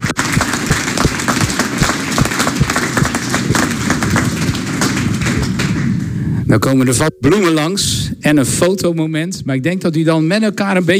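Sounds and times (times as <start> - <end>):
applause: 0.0 - 6.0
speech: 6.5 - 10.9.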